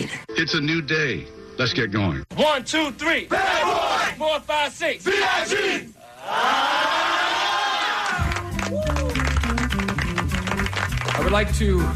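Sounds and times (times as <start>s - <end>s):
speech: 0.4s - 7.2s, 11.3s - 11.9s
graduates cheering and shouting to welcome a commencement speaker: 5.2s - 9.4s
music with deep, stepping bass notes: 8.3s - 11.9s.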